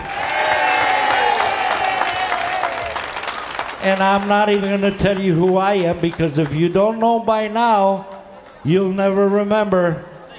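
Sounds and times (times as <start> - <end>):
audience applause: 0.0 - 7.0
speech: 3.8 - 10.1.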